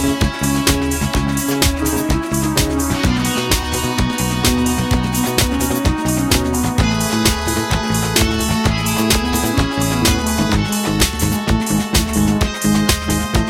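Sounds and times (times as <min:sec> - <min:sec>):
rainforest instrumental music: 0:00.0 - 0:13.4.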